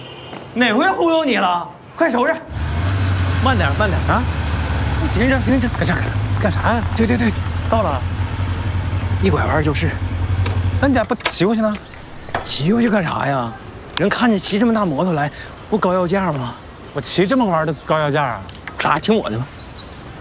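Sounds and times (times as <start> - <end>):
speech: 0.5 - 2.6, 3.4 - 4.4, 5.1 - 8.2, 9.2 - 10.0, 10.8 - 19.6
big motorcycle idling: 3.9 - 11.8.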